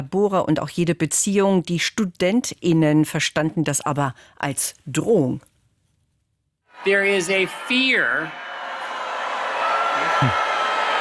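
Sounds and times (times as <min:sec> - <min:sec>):
speech: 0:00.0 - 0:05.5, 0:06.8 - 0:08.5, 0:10.2 - 0:10.5
audience booing loudly: 0:06.7 - 0:10.9.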